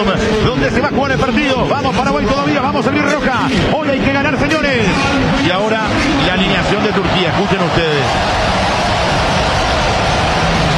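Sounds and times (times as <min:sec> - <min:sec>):
speech: 0:00.0 - 0:08.6
stadium crowd ambience: 0:00.0 - 0:10.7.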